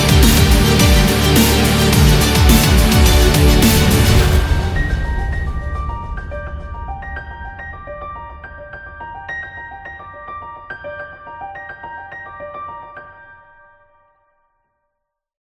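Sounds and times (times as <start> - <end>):
epic dubstep music: 0.0 - 6.1.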